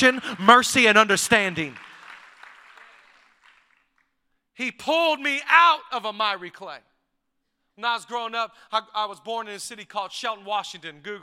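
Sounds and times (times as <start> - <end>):
speech: 0.0 - 1.9, 4.6 - 6.9, 7.8 - 11.2
audience clapping: 0.0 - 4.2.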